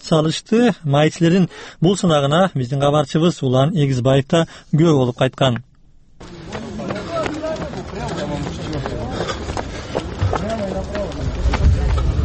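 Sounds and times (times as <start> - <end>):
speech: 0.1 - 6.6
running footsteps of police officer candidates racing over three kilometres: 6.2 - 12.2.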